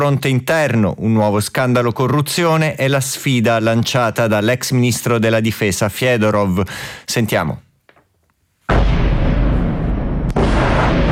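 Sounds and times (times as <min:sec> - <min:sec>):
speech: 0:00.0 - 0:07.7
drumming booms of explosions at night in Kyiv: 0:08.7 - 0:11.1.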